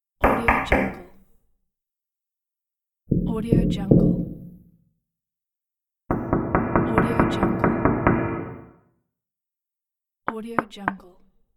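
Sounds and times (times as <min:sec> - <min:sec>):
knocking on door: 0:00.2 - 0:01.0, 0:03.1 - 0:04.7, 0:06.1 - 0:08.8.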